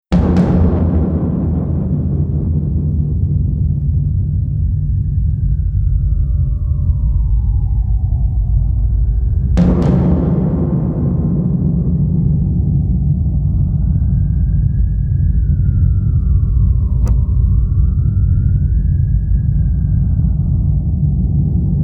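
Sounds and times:
big drum: 0.0 - 7.6, 8.3 - 21.8.

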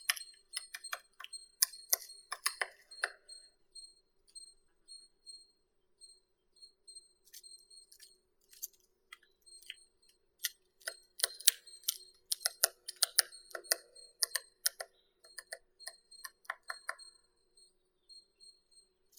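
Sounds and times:
three-toed woodpecker Picoides tridactylus: 0.0 - 3.3, 7.3 - 17.2.

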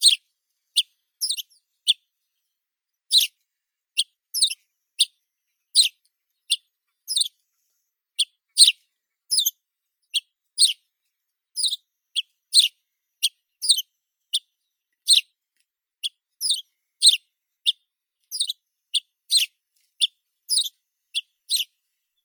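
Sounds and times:
saxaul sparrow Passer ammodendri calling: 0.0 - 0.2, 0.8 - 2.0, 3.1 - 3.3, 4.3 - 5.1, 5.7 - 7.3, 8.2 - 9.5, 10.1 - 10.8, 11.6 - 15.3, 16.0 - 21.7.

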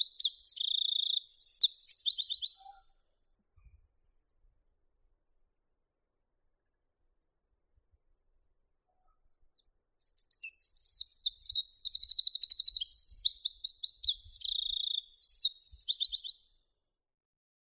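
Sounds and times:
Troglodytes troglodytes: 0.0 - 2.7, 9.5 - 16.4.

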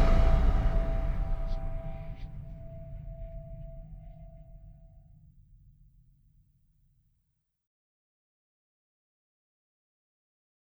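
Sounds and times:
drums: 0.0 - 3.3.

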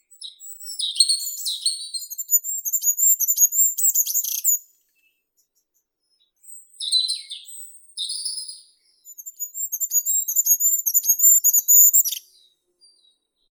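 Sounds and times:
goldcrest Regulus regulus: 0.2 - 4.7, 6.5 - 12.5.

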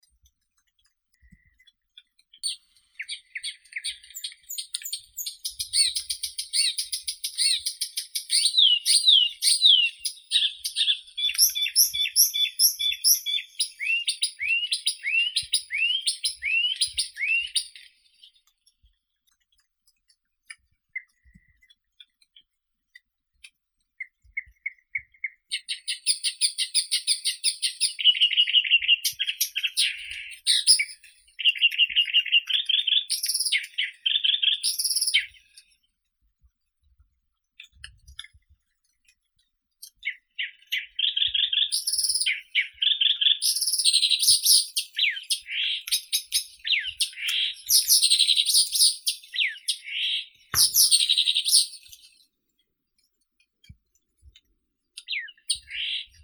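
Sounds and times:
Blyth's reed warbler Acrocephalus dumetorum singing: 2.3 - 18.4, 24.4 - 35.6, 40.0 - 52.2, 55.0 - 56.2.

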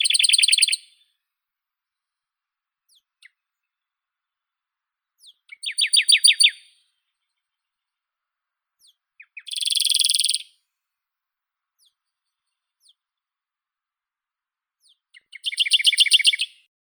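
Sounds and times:
Radde's warbler Phylloscopus schwarzi singing: 0.0 - 0.9, 5.2 - 6.8, 8.8 - 10.5, 14.8 - 16.6.

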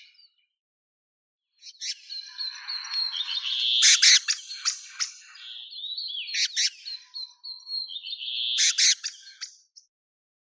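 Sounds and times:
black-throated thrush Turdus atrogularis calling: 1.8 - 7.1, 8.1 - 9.4.

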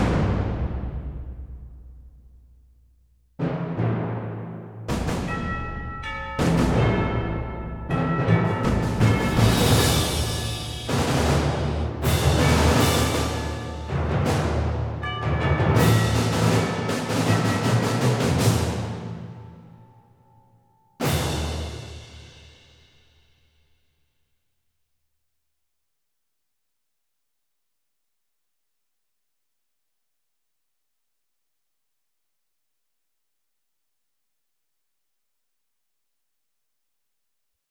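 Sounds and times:
percussion: 0.0 - 23.7.

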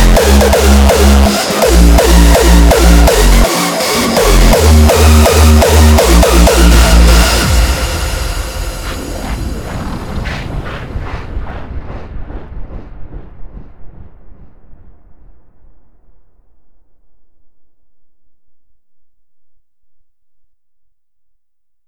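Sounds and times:
hard bass music: 0.0 - 9.5.

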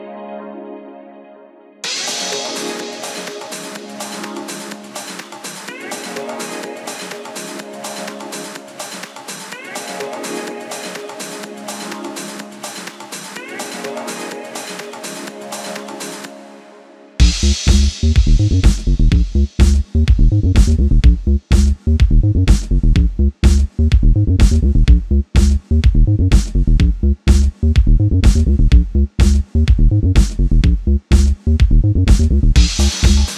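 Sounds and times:
bass mix: 17.2 - 33.3.

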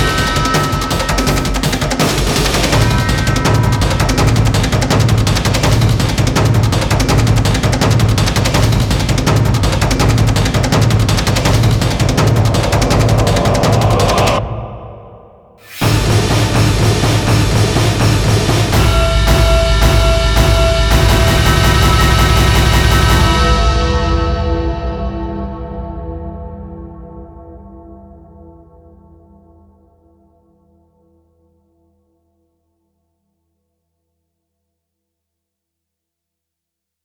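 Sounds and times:
drums: 0.0 - 26.7.

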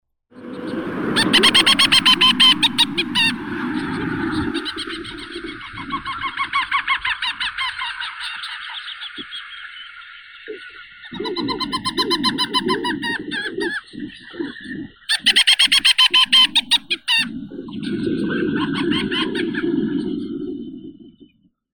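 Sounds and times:
laughter: 1.0 - 19.9
mottled petrel Pterodroma inexpectata calling: 1.2 - 3.3, 15.1 - 17.2.

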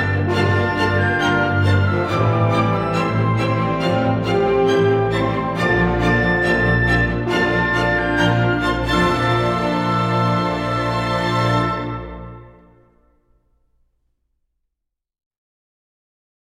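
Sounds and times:
fanfare: 0.0 - 12.9.

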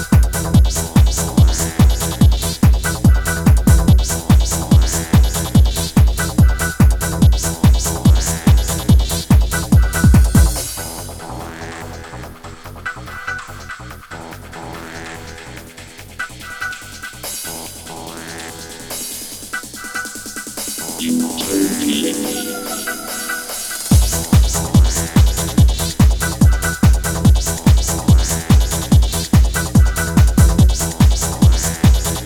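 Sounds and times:
techno dub music: 0.0 - 11.3, 20.8 - 32.2.

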